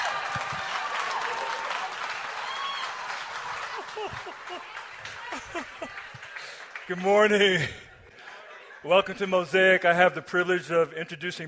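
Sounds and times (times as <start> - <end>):
audience applause and cheering for a guest pastor at a church service: 0.0 - 7.9
laughter: 3.3 - 9.6
speech: 4.0 - 6.1, 6.9 - 7.8, 8.8 - 11.4.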